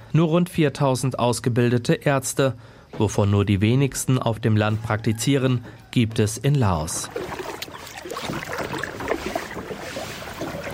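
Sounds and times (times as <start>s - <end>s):
speech: 0.2s - 7.5s
moving river water: 6.8s - 10.7s
paddling a kayak on a river: 7.0s - 10.7s.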